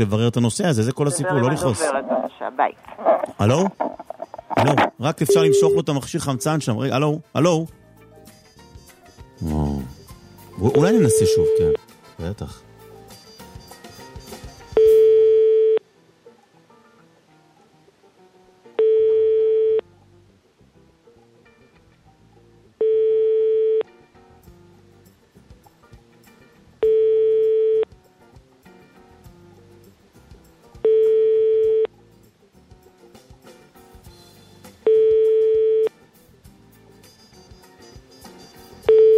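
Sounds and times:
speech: 0.0 - 4.0, 4.6 - 7.8, 9.4 - 9.7, 10.6 - 12.7
faint low noise: 0.0 - 7.4, 9.5 - 39.1
telephone busy tone after a call is cut off: 5.3 - 6.5, 10.6 - 11.8, 14.8 - 15.8, 18.8 - 19.8, 22.8 - 23.8, 26.8 - 27.8, 30.8 - 31.9, 34.9 - 35.9, 38.9 - 39.1.

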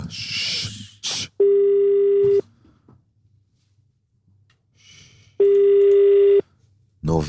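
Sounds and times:
telephone ringback tone: 1.4 - 2.4, 5.4 - 6.4.

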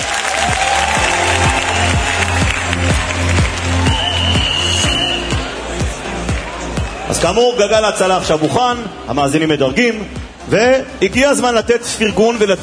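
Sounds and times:
applause: 0.0 - 6.6
speech: 7.2 - 12.6.

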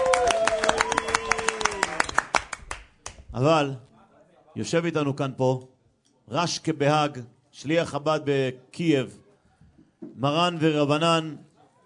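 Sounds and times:
audience clapping: 0.0 - 3.3
speech: 3.4 - 3.9, 4.6 - 5.7, 6.3 - 9.2, 10.0 - 11.5.

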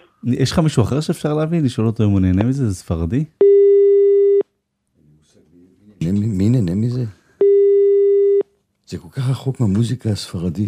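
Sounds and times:
speech: 0.2 - 3.5, 6.0 - 7.2, 8.9 - 10.6
telephone busy signal while placing a call: 7.4 - 8.4.

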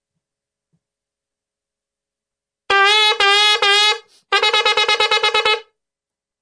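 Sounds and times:
shofar blasts sounding a shevarim-teruah call: 2.7 - 5.7.

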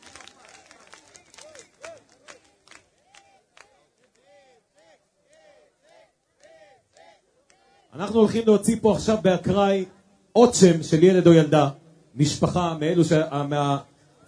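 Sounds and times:
audience clapping: 0.0 - 7.8
speech: 8.0 - 13.9.

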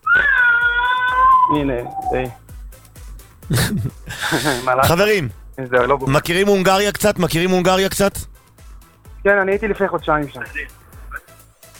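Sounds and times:
child crying: 0.0 - 2.4
speech: 1.5 - 2.4, 3.5 - 8.3, 9.2 - 10.8
laughter: 3.5 - 5.3.

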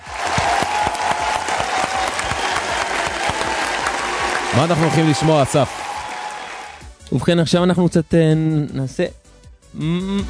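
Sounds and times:
audience clapping: 0.0 - 6.9
speech: 4.5 - 5.8, 7.1 - 10.2.

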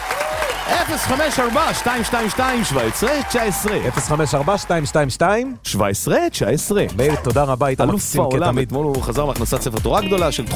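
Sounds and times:
audience applause: 0.0 - 5.1
speech: 0.8 - 10.5.

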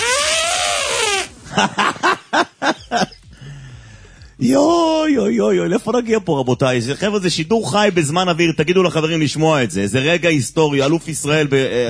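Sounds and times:
person imitating an elephant trumpeting: 0.0 - 1.4
laughter: 1.5 - 3.3
speech: 1.6 - 2.0, 2.9 - 3.1, 4.4 - 11.8.

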